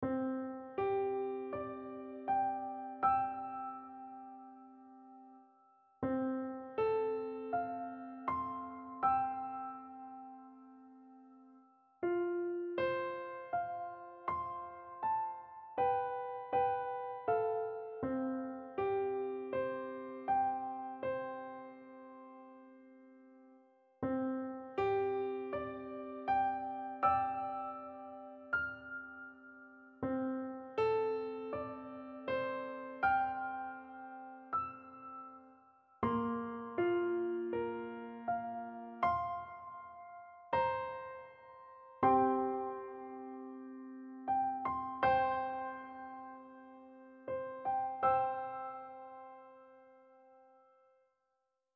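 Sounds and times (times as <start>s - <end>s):
solo piano: 0.0s - 51.1s.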